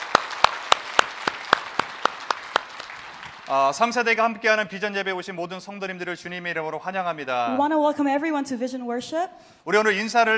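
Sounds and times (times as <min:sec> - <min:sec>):
congregation clapping in unison during a church worship service: 0:00.0 - 0:04.3
speech: 0:03.5 - 0:10.3.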